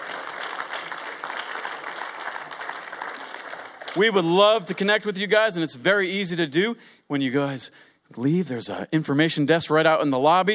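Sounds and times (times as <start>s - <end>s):
audience applause: 0.0s - 4.4s
speech: 3.9s - 10.5s.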